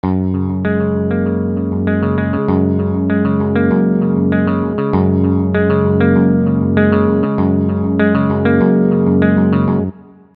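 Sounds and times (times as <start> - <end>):
electric guitar: 0.0 - 10.3.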